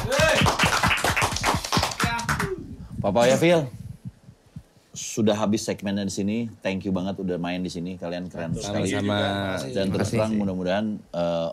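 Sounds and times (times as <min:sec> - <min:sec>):
people clapping: 0:00.0 - 0:02.6
speech: 0:03.0 - 0:03.8, 0:05.0 - 0:11.5.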